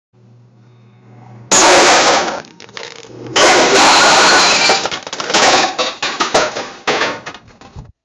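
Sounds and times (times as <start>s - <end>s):
box being destroyed: 1.5s - 7.4s.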